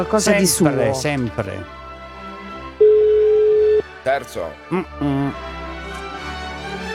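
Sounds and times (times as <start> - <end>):
speech: 0.0 - 1.8, 4.0 - 5.6
telephone ringing tone: 2.8 - 3.8.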